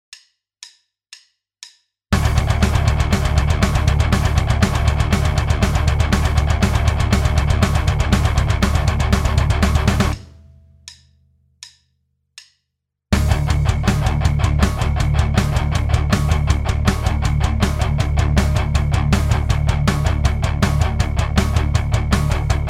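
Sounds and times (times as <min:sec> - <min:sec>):
rhythm: 0:02.2 - 0:11.1, 0:13.2 - 0:22.6.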